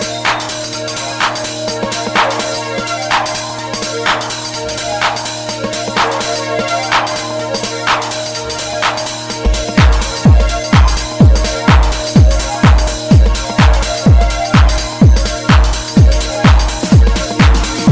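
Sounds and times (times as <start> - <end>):
909 synth strings in techno: 0.0 - 17.9.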